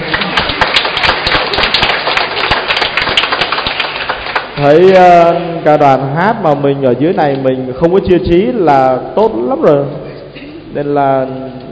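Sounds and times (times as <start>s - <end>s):
applause for the choir: 0.0s - 4.9s
speech: 4.6s - 10.0s, 10.8s - 11.7s.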